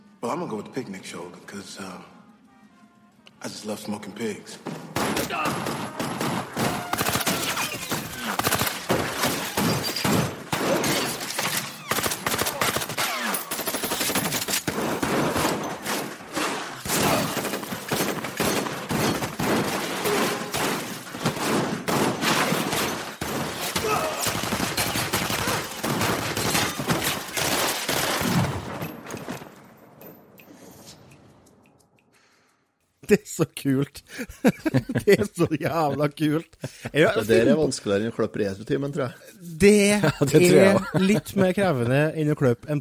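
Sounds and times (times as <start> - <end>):
speech: 0.2 - 2.2, 3.4 - 6.5, 33.4 - 42.8
rhythmic exchange of gunfire: 4.9 - 11.3, 11.9 - 28.8
laughter: 34.1 - 37.6, 39.9 - 41.9.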